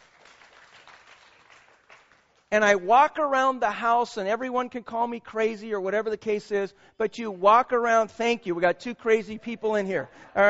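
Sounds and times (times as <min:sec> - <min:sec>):
scattered audience clapping: 0:00.0 - 0:02.9
speech: 0:02.5 - 0:10.4.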